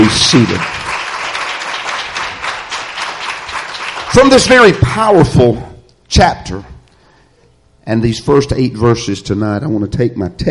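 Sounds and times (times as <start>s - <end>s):
church congregation clapping in praise: 0.0s - 5.4s
speech: 0.1s - 0.8s, 4.1s - 6.7s, 7.9s - 10.5s.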